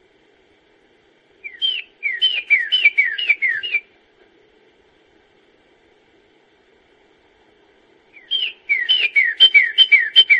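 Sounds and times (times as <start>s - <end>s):
songbird whistles and trill: 1.4s - 3.9s, 8.1s - 10.3s.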